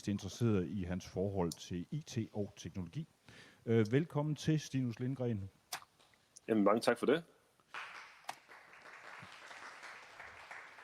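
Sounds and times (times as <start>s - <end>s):
speech: 0.0s - 5.6s, 6.5s - 7.9s
few people clapping: 7.7s - 10.8s.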